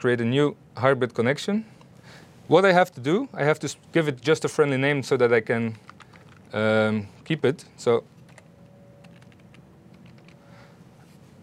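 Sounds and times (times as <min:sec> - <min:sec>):
speech: 0:00.0 - 0:05.9, 0:06.5 - 0:08.1
faint typing on a computer keyboard: 0:05.8 - 0:06.6, 0:08.3 - 0:10.4.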